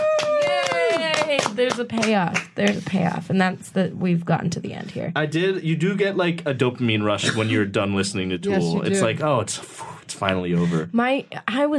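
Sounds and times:
sustained voiced cheer or hummed note: 0.0s - 1.6s
hosts clapping for themselves: 0.0s - 3.2s
speech: 1.6s - 11.7s.

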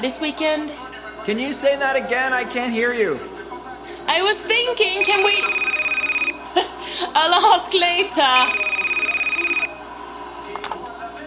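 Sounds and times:
speech: 0.0s - 3.4s, 4.1s - 5.7s, 7.0s - 8.7s
telephone ringing with a trilling bell: 4.7s - 6.7s, 7.4s - 9.8s.

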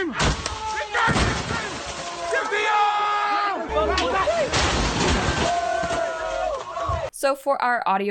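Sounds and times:
crowd cheering and shouting: 0.0s - 7.2s
car smashing into storefront window: 0.2s - 2.7s, 4.0s - 7.1s
speech: 7.2s - 8.1s.

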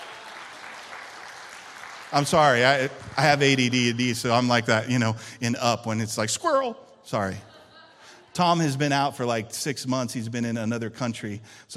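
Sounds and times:
crowd applause: 0.0s - 4.4s
speech: 2.1s - 7.6s, 8.4s - 11.7s
laughter: 7.1s - 9.5s.

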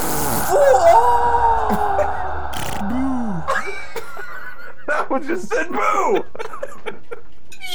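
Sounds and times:
fart sound effect: 0.0s - 1.0s, 1.7s - 2.0s, 2.6s - 3.0s
laughter: 0.0s - 7.6s
speech: 5.1s - 6.4s.

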